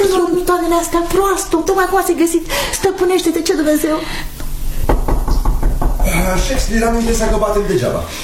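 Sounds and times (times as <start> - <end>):
speech: 0.8 - 4.4, 6.2 - 8.2
knocking on a door: 4.8 - 7.7.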